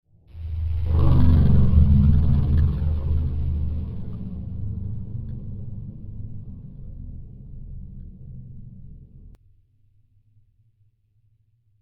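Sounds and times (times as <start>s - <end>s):
deep resonant spacecraft sound: 0.1s - 9.4s.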